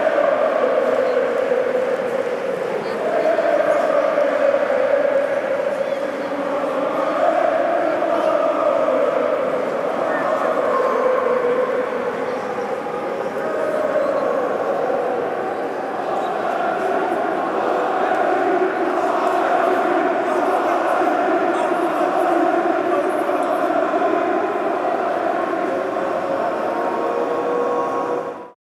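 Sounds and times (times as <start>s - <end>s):
fans in a railway station: 0.0s - 28.6s.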